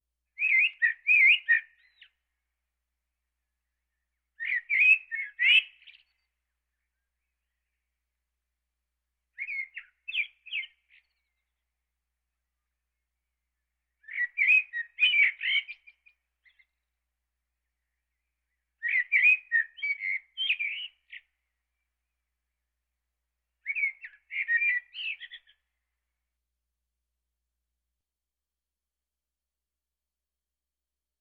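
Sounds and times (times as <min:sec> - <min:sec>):
Eastern blackbird song: 0:00.3 - 0:02.2, 0:03.9 - 0:07.1, 0:09.4 - 0:11.6, 0:13.9 - 0:16.8, 0:17.8 - 0:21.4, 0:23.6 - 0:25.8.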